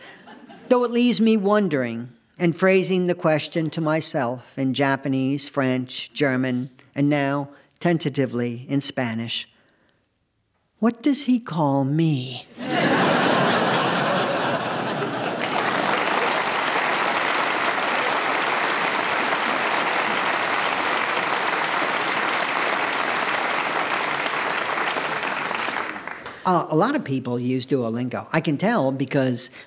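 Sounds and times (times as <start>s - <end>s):
crowd laughing: 0.0s - 0.7s, 12.5s - 26.2s
speech: 0.7s - 9.5s, 10.8s - 13.0s, 26.5s - 29.6s
audience applause: 12.8s - 26.4s.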